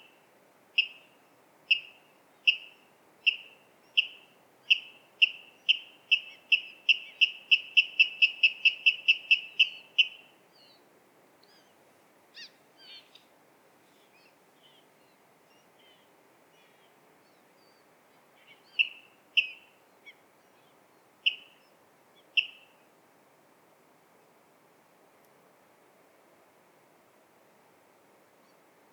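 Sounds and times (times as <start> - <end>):
water rail sharp kip calls: 1.7 - 10.2, 22.4 - 22.7.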